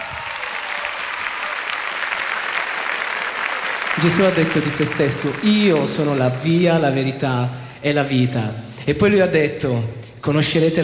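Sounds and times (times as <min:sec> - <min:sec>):
audience applause: 0:00.0 - 0:07.2
speech: 0:04.0 - 0:10.8.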